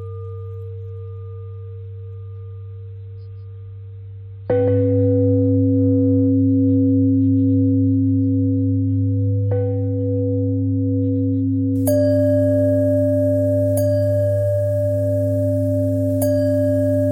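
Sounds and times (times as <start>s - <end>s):
bells ringing: 4.6s - 17.1s.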